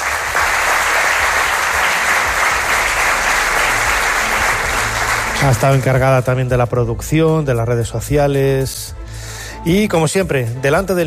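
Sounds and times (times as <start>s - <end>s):
audience applause: 0.0s - 6.0s
speech: 5.4s - 9.0s, 9.6s - 11.0s.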